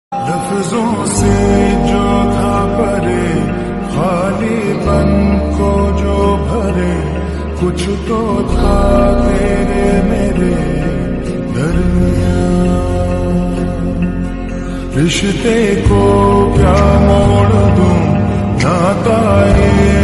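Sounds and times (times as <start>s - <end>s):
slowed song with reverb: 0.1s - 20.0s.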